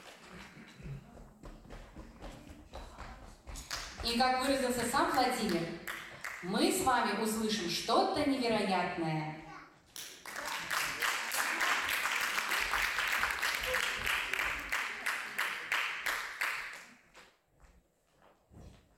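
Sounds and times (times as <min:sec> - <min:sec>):
audience applause: 0:00.0 - 0:01.0, 0:10.0 - 0:17.0
speech: 0:04.0 - 0:09.4.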